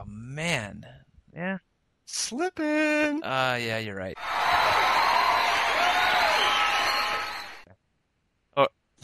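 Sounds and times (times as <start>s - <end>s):
speech: 0.4s - 5.0s
canned applause: 4.2s - 7.6s.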